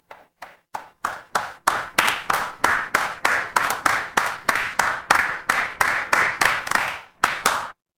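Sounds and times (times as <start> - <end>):
crowd applause: 1.7 - 7.8.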